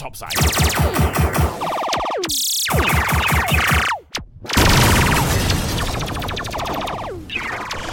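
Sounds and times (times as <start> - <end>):
weapons and turrets firing: 0.3 - 7.8.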